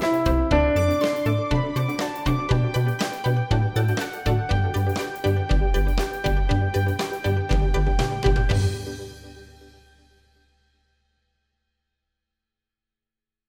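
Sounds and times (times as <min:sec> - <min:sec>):
instrumental music: 0:00.0 - 0:10.4.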